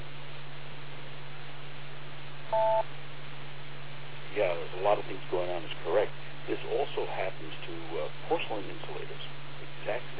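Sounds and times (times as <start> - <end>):
low hum: 0.0 - 10.1
steady hiss: 0.0 - 10.1
two-tone beep signalling speaker change: 2.5 - 2.9
speech: 2.5 - 3.1, 4.4 - 10.1.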